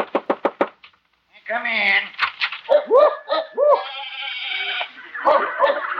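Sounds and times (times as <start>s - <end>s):
speech: 1.5s - 3.2s
rough barks: 2.4s - 5.9s
squawks: 2.7s - 5.9s
goats or sheep bleating in an animal shed: 3.6s - 5.0s.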